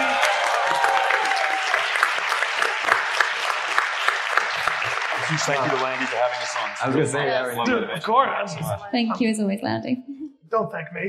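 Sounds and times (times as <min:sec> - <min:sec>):
applause: 0:00.0 - 0:07.0
laughter: 0:04.4 - 0:08.8
speech: 0:05.3 - 0:11.0.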